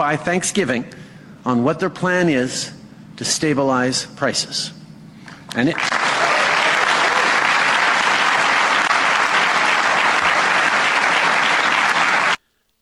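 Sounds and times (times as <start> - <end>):
speech: 0.0 - 4.8, 5.5 - 5.9
thunderous applause after a Canadian political speech on food prices: 5.7 - 12.4.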